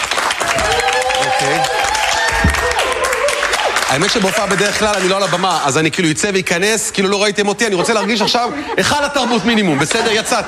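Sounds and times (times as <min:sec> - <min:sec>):
applause: 0:00.0 - 0:05.9
speech: 0:03.9 - 0:10.4
laughter: 0:07.0 - 0:10.4.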